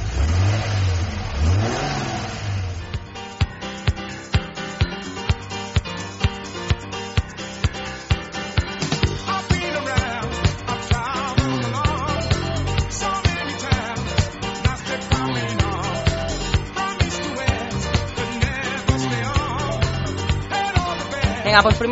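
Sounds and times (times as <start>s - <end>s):
car engine starting and revving: 0.0s - 3.1s
steady regular rhythmic beat: 2.8s - 21.9s
speech: 21.6s - 21.9s.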